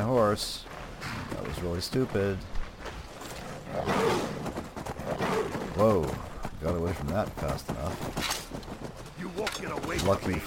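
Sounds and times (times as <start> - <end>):
speech: 0.3 - 0.7, 1.5 - 2.6, 3.7 - 4.2, 5.8 - 10.4
saber-toothed cats roaring and snarling in video game: 3.2 - 6.5.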